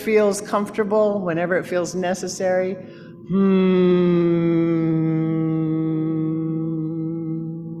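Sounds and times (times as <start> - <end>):
speech: 0.0 - 4.4
people humming together: 3.3 - 7.7.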